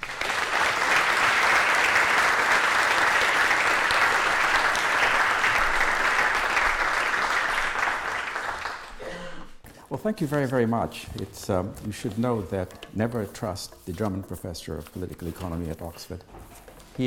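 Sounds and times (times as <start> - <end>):
audience applause welcoming a lecturer at an Oxford lecture: 0.0 - 9.1
speech: 10.0 - 16.4.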